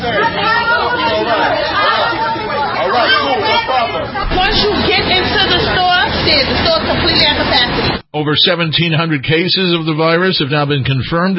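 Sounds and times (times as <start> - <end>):
crowd chatter in a busy grocery store: 0.0 - 8.0
speech: 3.0 - 11.3.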